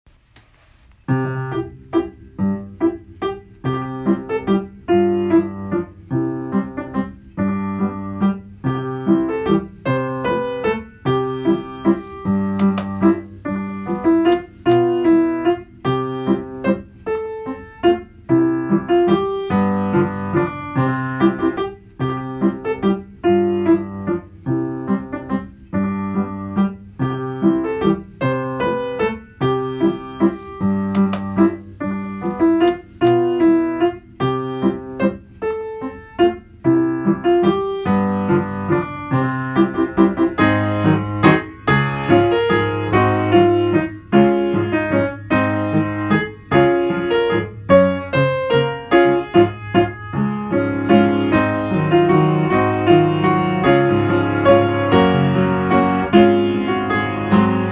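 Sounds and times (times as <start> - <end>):
piano track: 1.1 - 57.6.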